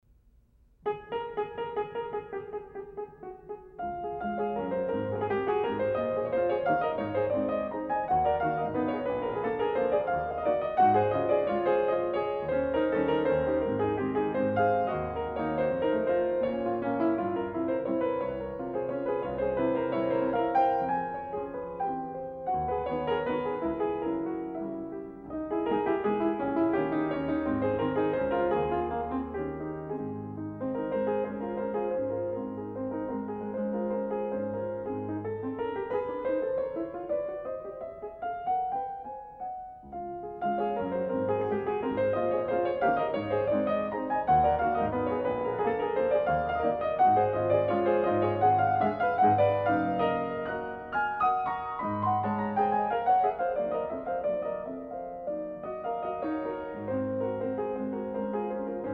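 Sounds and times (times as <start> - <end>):
piano etude in A flat major: 0.0 - 58.9.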